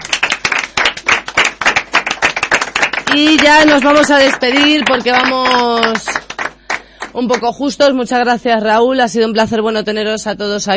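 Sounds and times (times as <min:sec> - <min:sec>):
round of applause: 0:00.0 - 0:07.5
speech: 0:03.1 - 0:06.2, 0:07.1 - 0:10.7.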